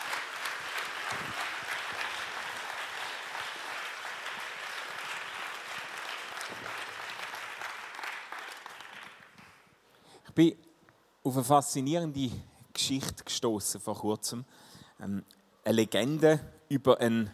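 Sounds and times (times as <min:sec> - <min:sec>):
audience applause: 0:00.0 - 0:09.6
speech: 0:01.1 - 0:01.4, 0:10.4 - 0:10.6, 0:11.2 - 0:17.3.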